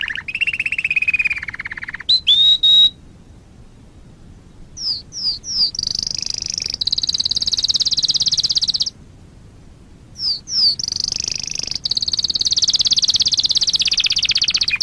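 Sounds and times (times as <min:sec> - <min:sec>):
Waterslager canary singing a high pulsed trill: 0:00.0 - 0:03.0, 0:04.8 - 0:09.0, 0:10.2 - 0:14.8.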